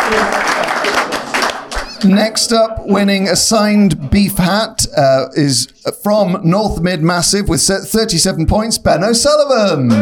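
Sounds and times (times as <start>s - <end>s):
round of applause from a group: 0.0s - 2.7s
speech: 0.1s - 0.4s, 2.0s - 9.9s.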